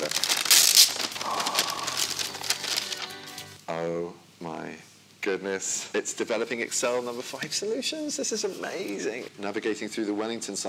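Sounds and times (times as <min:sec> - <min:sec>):
wrapping paper sealed with sellotape crinkling and tearing: 0:00.0 - 0:03.6
speech: 0:03.7 - 0:10.6.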